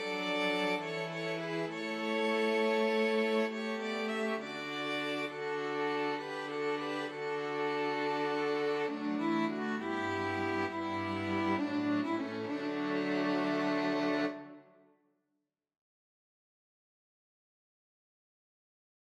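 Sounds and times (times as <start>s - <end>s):
string quartet playing a hymn: 0.0s - 14.6s.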